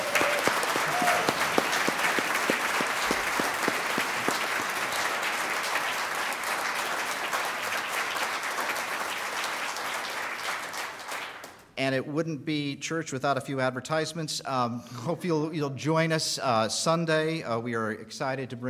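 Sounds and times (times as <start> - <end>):
audience applauding: 0.0 - 11.6
speech: 11.9 - 18.6.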